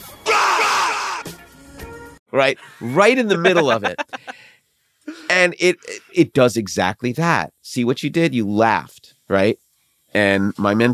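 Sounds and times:
man's loud raspy scream: 0.2s - 1.3s
speech: 2.4s - 4.4s, 5.4s - 10.9s
laughter: 2.7s - 4.4s.

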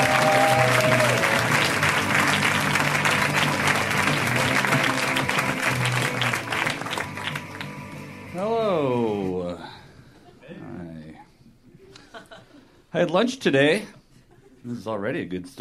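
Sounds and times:
faint whoops: 0.0s - 1.6s
crowd applauding for a comedian: 0.0s - 8.4s
crowd noise: 0.0s - 9.4s
speech: 13.0s - 14.0s, 14.6s - 15.5s.

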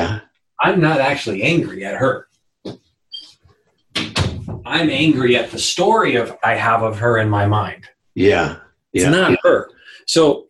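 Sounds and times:
speech: 0.6s - 2.8s, 4.7s - 10.4s
door being shut: 4.0s - 4.8s.

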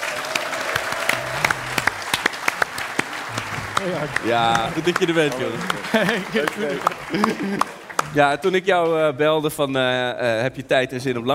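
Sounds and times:
audience applause: 0.0s - 8.6s
laughter: 3.2s - 8.2s
speech: 3.8s - 11.3s.

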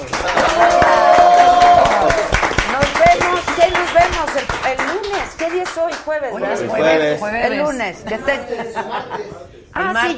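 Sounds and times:
long held cheering tone: 0.0s - 3.8s
audience applause: 0.0s - 6.0s
speech: 5.6s - 10.1s
laughter: 8.0s - 9.6s.

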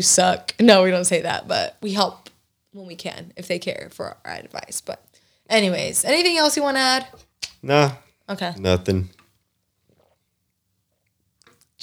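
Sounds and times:
speech: 0.0s - 9.2s
person drinking water: 9.1s - 11.8s.

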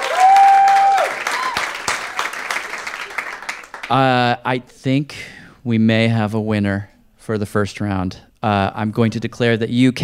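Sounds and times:
audience applause: 0.0s - 4.0s
speech: 3.9s - 10.0s.

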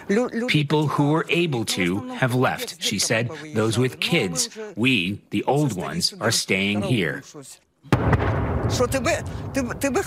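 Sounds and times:
speech: 0.1s - 10.0s
artillery explosions: 7.9s - 10.0s.

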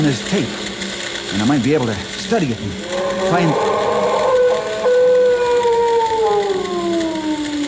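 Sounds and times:
speech: 0.0s - 0.7s, 1.3s - 3.8s
eerie animal howl: 2.8s - 7.6s.

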